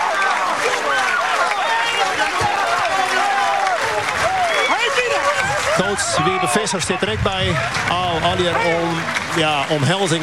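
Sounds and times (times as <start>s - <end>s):
excited shouts and whoops: 0.0s - 7.7s
clapping: 0.0s - 10.2s
crowd cheering: 0.0s - 10.2s
speech: 5.8s - 10.2s.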